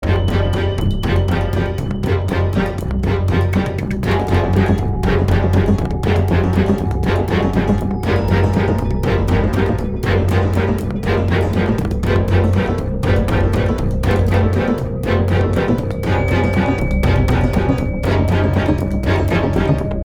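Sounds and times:
action loop: 0.0s - 20.0s.

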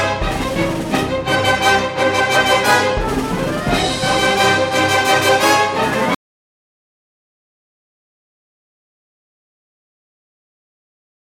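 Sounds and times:
percussion: 0.0s - 6.2s.

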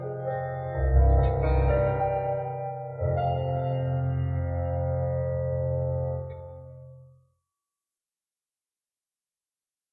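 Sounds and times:
piano music: 0.0s - 7.0s.

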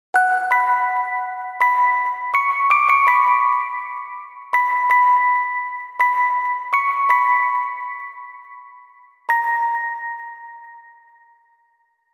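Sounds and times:
music box: 0.2s - 11.8s.

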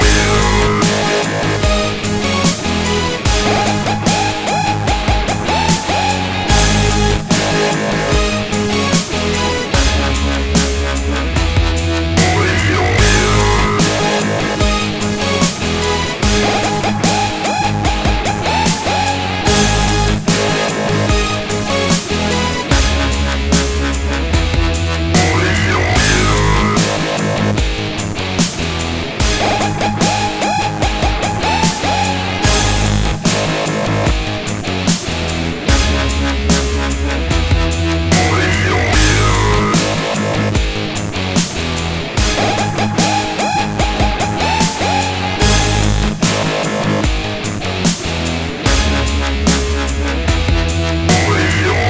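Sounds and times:
dubstep loop: 0.0s - 27.8s, 28.7s - 51.8s.

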